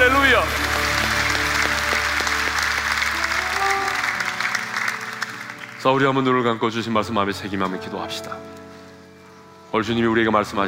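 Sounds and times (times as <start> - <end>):
audience applause: 0.0 - 6.4
speech: 5.8 - 8.6, 9.7 - 10.6.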